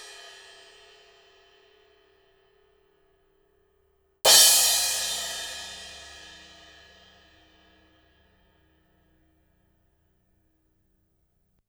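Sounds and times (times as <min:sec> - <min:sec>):
acoustic drum kit: 0:04.3 - 0:07.6.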